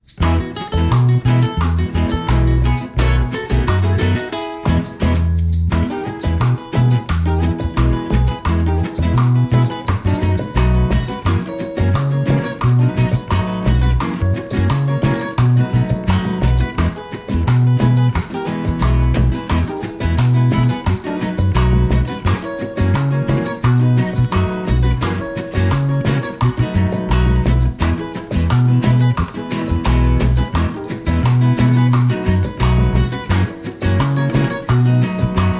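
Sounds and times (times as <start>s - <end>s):
instrumental music: 0.0s - 35.5s.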